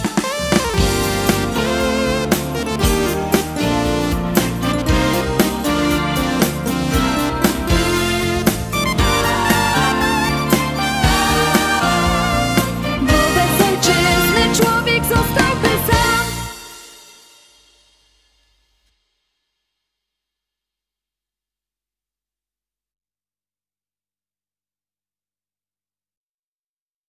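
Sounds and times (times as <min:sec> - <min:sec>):
cheerful Polish patriotic song with lyrics: 0:00.0 - 0:17.0.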